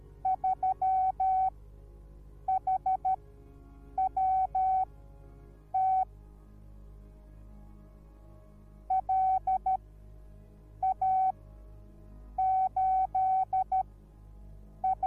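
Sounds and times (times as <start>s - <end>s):
morse code beeps: 0.2s - 1.5s, 2.5s - 3.2s, 4.0s - 4.8s, 5.8s - 6.0s, 8.9s - 9.8s, 10.8s - 11.3s, 12.4s - 13.8s, 14.8s - 15.0s.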